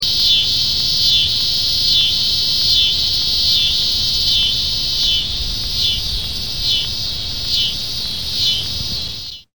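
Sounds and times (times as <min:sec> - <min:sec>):
cicada song: 0:00.0 - 0:09.5
low rumble of background noise: 0:04.0 - 0:08.3.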